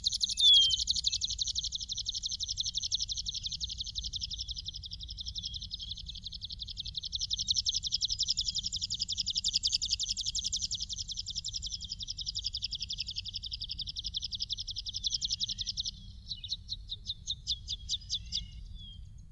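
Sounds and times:
long-tailed widowbird calling: 0:00.0 - 0:19.0.

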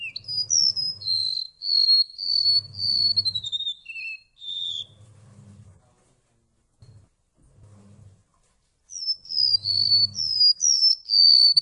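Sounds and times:
golden-bellied gerygone song: 0:00.0 - 0:05.0, 0:08.9 - 0:11.6.

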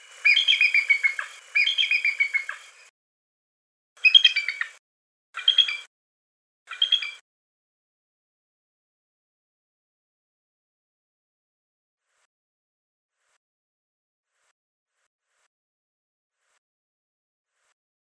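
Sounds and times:
bald eagle calling: 0:00.0 - 0:02.8, 0:04.0 - 0:04.8, 0:05.4 - 0:05.9, 0:06.7 - 0:07.2.

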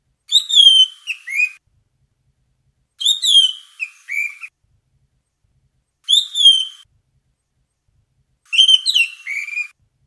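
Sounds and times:
bird two-part harmonic whistled call: 0:00.3 - 0:01.6, 0:03.0 - 0:04.5, 0:06.1 - 0:06.8, 0:08.5 - 0:09.8.

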